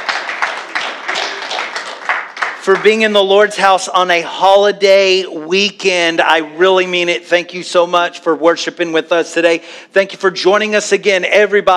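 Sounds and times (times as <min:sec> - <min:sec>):
person clapping hands in a church service at Redemption Church in Plano, Texas: 0:00.0 - 0:03.2
speech: 0:02.6 - 0:11.7.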